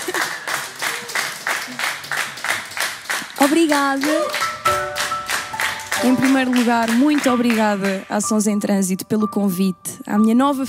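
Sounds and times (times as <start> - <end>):
audience clapping in unison at a live music concert: 0.0 - 8.4
speech: 3.4 - 4.8, 6.0 - 10.6.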